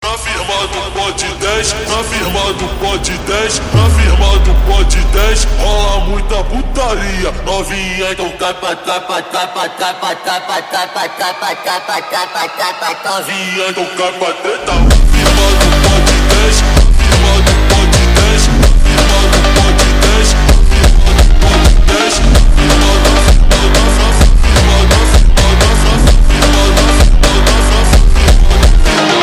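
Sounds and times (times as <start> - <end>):
Brazilian funk and phonk music: 0.0 - 29.2.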